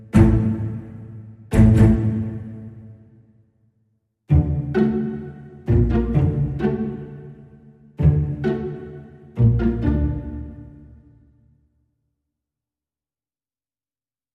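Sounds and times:
string instruments playing: 0.0 - 3.2, 4.3 - 11.4.

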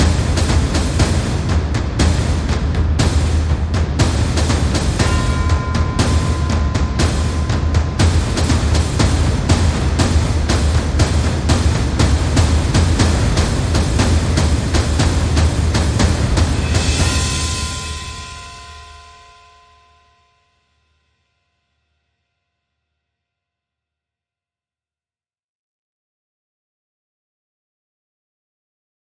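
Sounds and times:
drums: 0.0 - 19.8.

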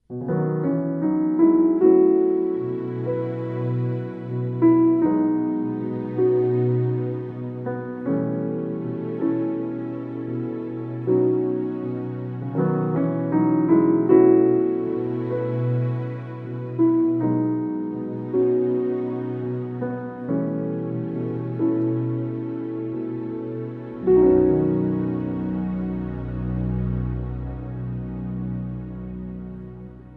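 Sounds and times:
strings: 0.2 - 30.1.

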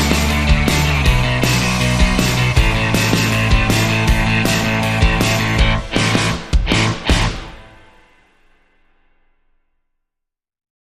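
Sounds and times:
indie music without lead: 0.0 - 8.2.

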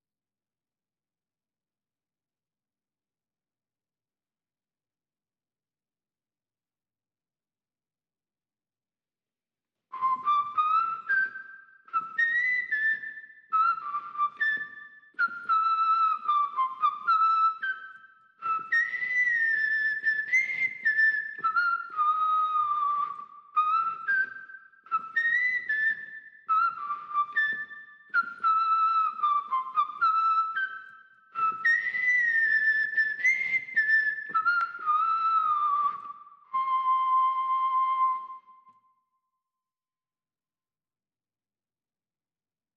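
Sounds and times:
whistle: 9.9 - 39.4.

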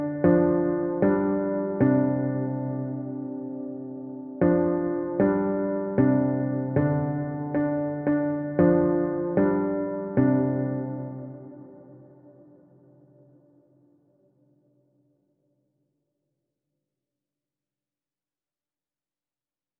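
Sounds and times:
piano chords: 0.0 - 13.5.

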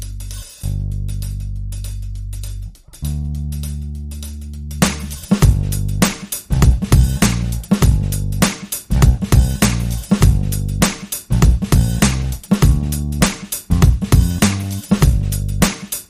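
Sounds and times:
bass: 0.0 - 16.0
drums: 4.7 - 16.0.

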